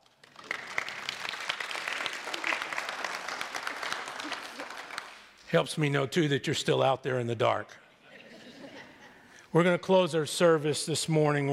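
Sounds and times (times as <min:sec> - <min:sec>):
audience applauding: 0:00.0 - 0:05.4
laughter: 0:03.8 - 0:04.9, 0:08.0 - 0:09.4
speech: 0:05.5 - 0:07.8, 0:09.5 - 0:11.5.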